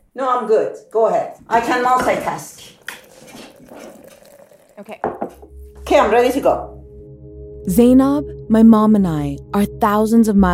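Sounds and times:
speech: 0.2s - 2.8s, 4.8s - 6.8s, 7.6s - 10.5s
coffee pouring into a cup: 1.9s - 5.8s.

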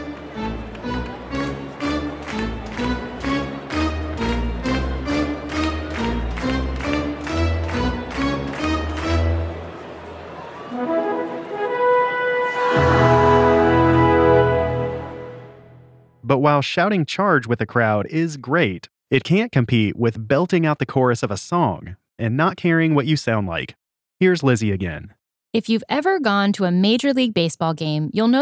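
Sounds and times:
stadium organ playing a fanfare: 0.0s - 16.0s
speech: 16.4s - 28.3s.

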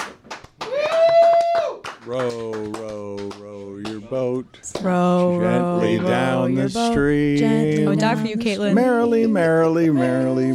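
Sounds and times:
clapping: 0.0s - 4.0s
speech: 2.1s - 10.5s.

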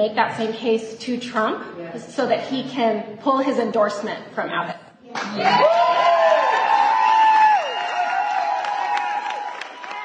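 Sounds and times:
speech: 0.0s - 6.0s
crowd cheering and applauding: 5.2s - 10.0s
shouts and whoops: 5.2s - 10.0s.

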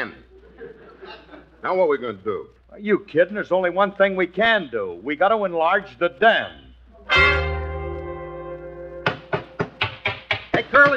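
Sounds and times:
laughter: 0.3s - 1.6s
speech: 1.6s - 7.4s
ringing harmonic tone: 7.1s - 9.1s
hammer blows: 9.0s - 10.9s.

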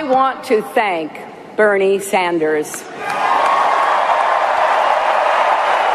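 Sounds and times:
speech: 0.0s - 3.4s
convention crowd applauding and cheering: 3.0s - 5.9s.

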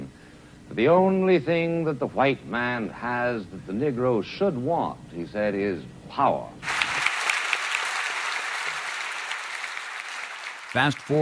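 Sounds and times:
speech: 0.8s - 6.7s, 10.8s - 11.1s
audience applause in a hall: 6.6s - 11.1s.

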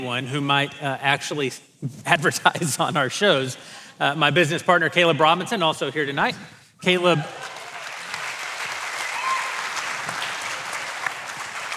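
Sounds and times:
speech: 0.0s - 7.5s
crowd applauding: 7.0s - 11.7s.

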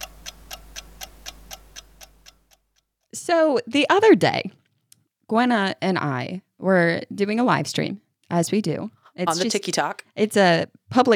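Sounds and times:
timer ticking: 0.0s - 2.9s
speech: 3.1s - 4.6s, 5.3s - 11.1s.

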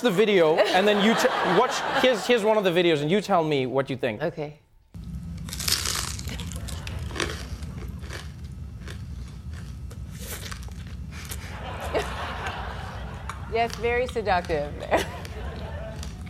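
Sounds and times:
speech: 0.0s - 4.6s, 13.6s - 15.2s
laughter: 0.4s - 2.7s, 11.3s - 16.2s
person crunching and biting food in an ASMR video: 5.0s - 11.5s, 13.1s - 16.2s.

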